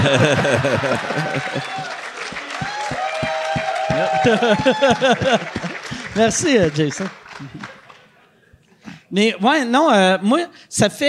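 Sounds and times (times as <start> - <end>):
speech: 0.0 - 2.0, 4.0 - 7.2, 9.1 - 11.0
hand claps: 0.0 - 8.1
audience cheering and whooping: 0.0 - 8.2
laughter: 0.0 - 8.4.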